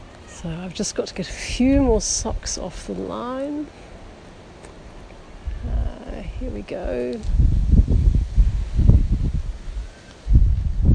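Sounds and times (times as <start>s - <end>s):
gusty mild outdoor wind: 0.0s - 10.9s
speech: 0.4s - 3.8s, 6.1s - 7.5s.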